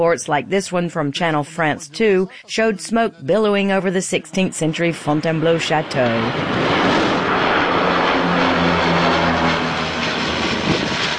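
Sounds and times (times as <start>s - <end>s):
speech: 0.0s - 7.0s
Canadair firefighting plane flying overhead: 4.1s - 11.1s.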